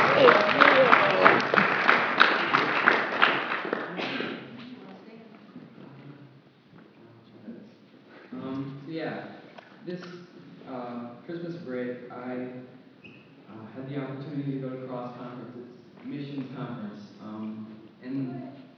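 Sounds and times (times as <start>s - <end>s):
crowd applause: 0.0s - 4.2s.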